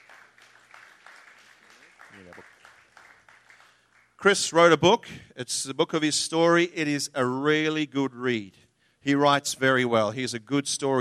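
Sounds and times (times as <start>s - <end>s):
audience applause welcoming a pastor onto the stage: 0.0s - 4.0s
speech: 2.2s - 2.6s, 4.2s - 10.9s.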